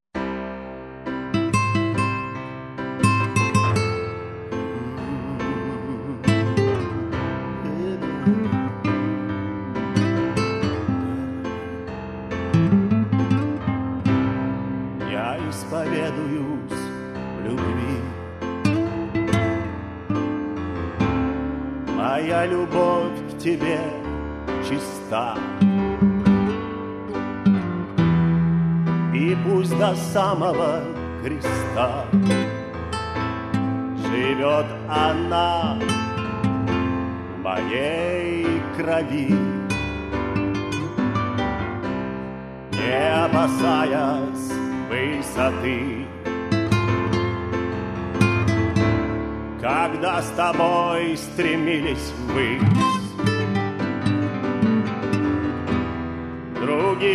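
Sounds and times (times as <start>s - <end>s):
blues music: 0.2s - 57.1s.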